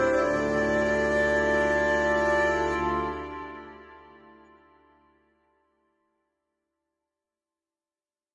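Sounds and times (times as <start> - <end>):
faded ancient classical folk song: 0.0 - 4.9.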